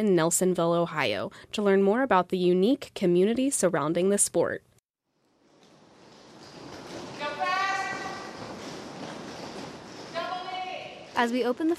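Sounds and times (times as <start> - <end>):
speech: 0.0 - 4.7, 11.2 - 11.7
roller skates smacking a hard floor: 5.6 - 11.2
people shouting: 7.2 - 8.4.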